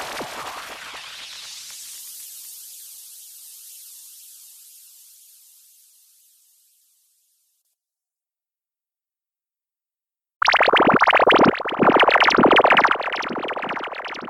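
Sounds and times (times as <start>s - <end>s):
sound effects: 10.4s - 14.2s.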